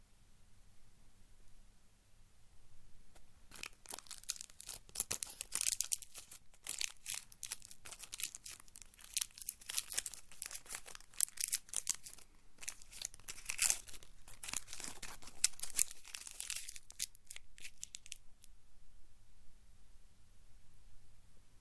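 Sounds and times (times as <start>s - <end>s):
sweet wrapper crumpling in a bedroom: 3.5s - 18.4s.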